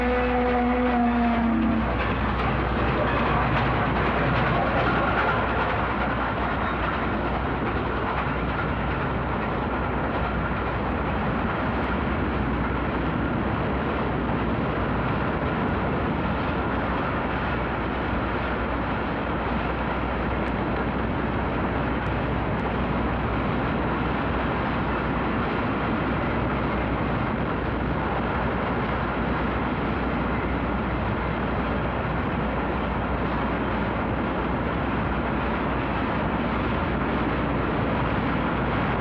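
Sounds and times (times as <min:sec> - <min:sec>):
Illinois Central steam locomotive at a railway station: 0:00.0 - 0:38.9.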